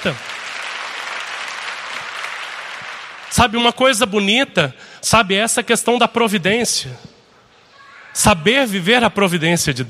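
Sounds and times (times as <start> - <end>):
speech: 0.0 - 0.3, 3.3 - 7.1, 8.2 - 9.8
church congregation clapping during a worship service: 0.0 - 4.3.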